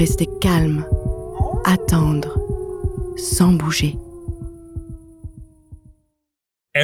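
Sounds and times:
speech: 0.0s - 1.0s, 1.6s - 2.4s, 3.2s - 4.0s
fast pounding heartbeat: 0.0s - 6.0s
wolves howling: 0.0s - 6.0s.

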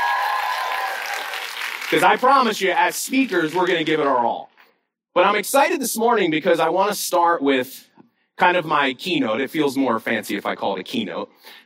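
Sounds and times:
audience round of applause: 0.0s - 4.3s
speech: 1.9s - 4.5s, 5.2s - 11.6s.

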